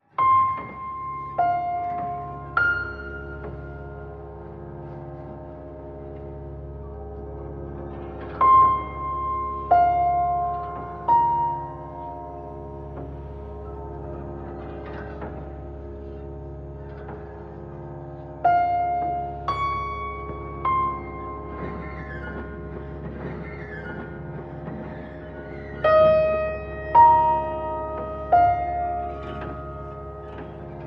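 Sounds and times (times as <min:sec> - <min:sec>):
Mali piano: 0:00.0 - 0:30.8.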